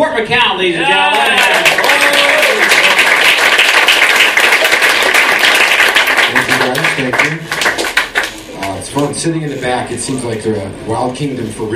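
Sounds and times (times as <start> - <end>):
speech: 0.2 - 1.6, 9.0 - 11.7
audience applause: 1.0 - 8.4.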